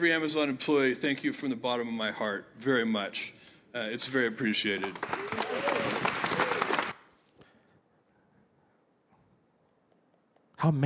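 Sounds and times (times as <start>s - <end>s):
speech: 0.0s - 5.5s, 10.6s - 10.8s
room of people clapping: 4.4s - 7.5s.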